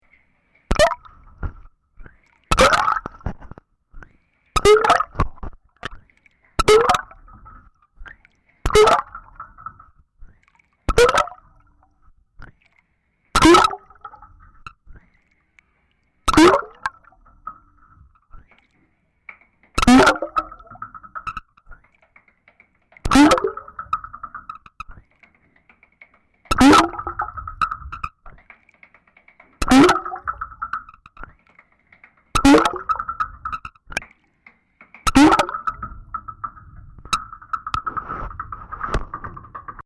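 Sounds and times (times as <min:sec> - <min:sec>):
microphone dunking: 0:00.7 - 0:06.0, 0:06.6 - 0:11.8, 0:13.4 - 0:15.0, 0:16.3 - 0:18.5, 0:19.8 - 0:21.8, 0:23.0 - 0:25.0, 0:26.5 - 0:28.4, 0:29.6 - 0:31.4, 0:32.3 - 0:34.1, 0:35.0 - 0:39.8.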